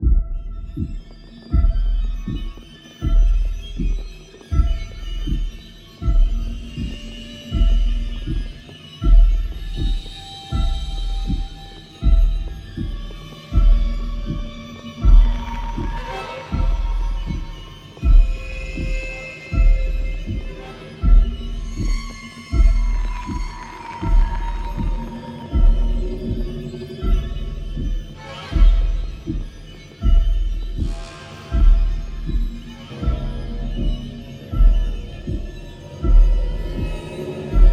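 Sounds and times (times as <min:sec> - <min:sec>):
horror sci-fi suspense music loop: 0:00.0 - 0:37.7.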